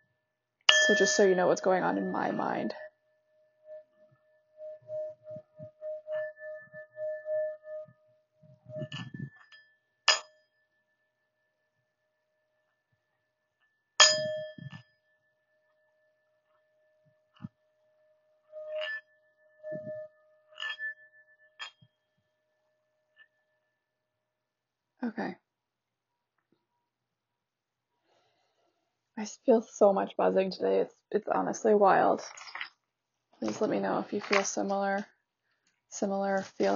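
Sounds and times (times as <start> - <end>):
singing bowl being struck and ringing: 0.7 - 11.1, 14.0 - 17.1, 18.0 - 23.5
speech: 0.9 - 2.8, 29.5 - 32.5, 33.4 - 35.1, 35.9 - 36.7.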